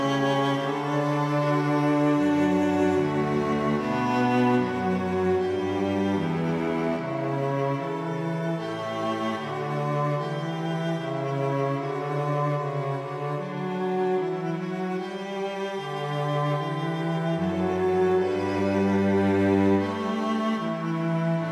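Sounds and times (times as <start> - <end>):
cello alto music: 0.0 - 21.5.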